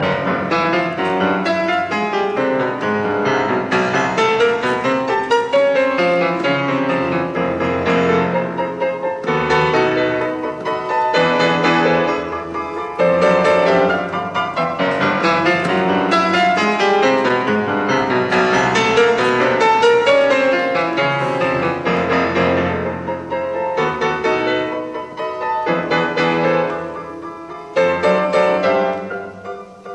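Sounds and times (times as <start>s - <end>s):
classical variations in C major on a waltz: 0.0s - 29.9s.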